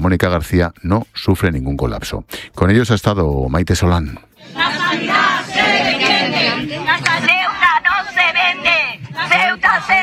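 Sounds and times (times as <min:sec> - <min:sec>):
speech: 0:00.0 - 0:05.2
protesters shouting outside Hospital Universitario de Ceuta: 0:04.4 - 0:10.0.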